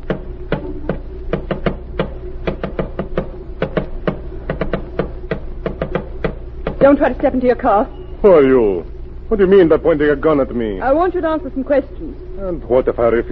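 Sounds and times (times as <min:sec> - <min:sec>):
sharp taps of a coded message: 0:00.0 - 0:07.0
low hum: 0:00.0 - 0:13.3
speech: 0:06.8 - 0:13.3.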